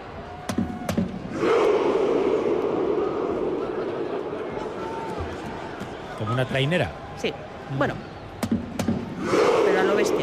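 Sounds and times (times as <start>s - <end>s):
football crowd shouting Viking rowing chant: 0.1s - 6.8s, 9.1s - 10.2s
speech: 6.3s - 8.1s, 10.0s - 10.2s.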